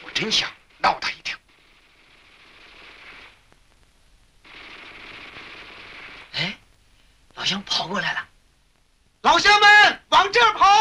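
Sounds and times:
Type 11 light machine gun firing in battle: 0.0 - 3.5, 4.4 - 6.6
speech: 0.2 - 1.1, 7.5 - 8.3, 9.2 - 10.7.

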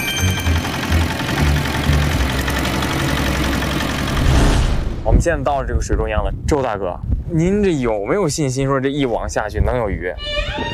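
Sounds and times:
fishing boat engine idling: 0.0 - 4.3
speech: 5.2 - 10.7.

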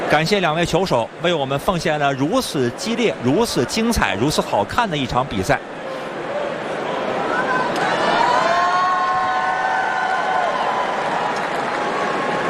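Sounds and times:
speech: 0.1 - 5.8
large stadium crowd cheering and applauding after a match: 6.6 - 12.4
whoops and high shouts: 7.2 - 12.4.

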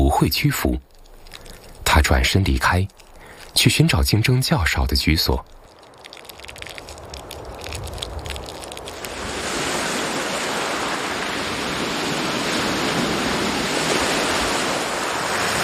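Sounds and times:
speech: 0.1 - 0.9, 2.0 - 3.0, 3.6 - 5.6
sea waves washing in: 5.7 - 15.6.

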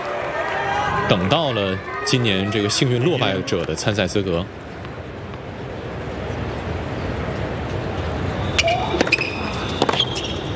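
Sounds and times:
crowd murmur: 0.0 - 9.6
speech: 1.1 - 4.7
tennis ball strikes and bounces in a professional tournament match: 8.6 - 10.4.

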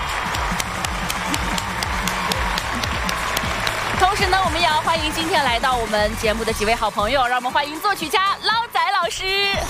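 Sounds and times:
audience applause: 0.0 - 6.5
speech: 4.2 - 9.6.

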